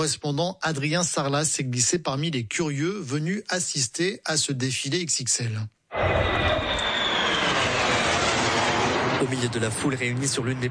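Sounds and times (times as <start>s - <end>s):
speech: 0.0s - 6.4s, 9.2s - 10.7s
F-16 and F-35 fighter jets flying overhead: 5.9s - 10.7s.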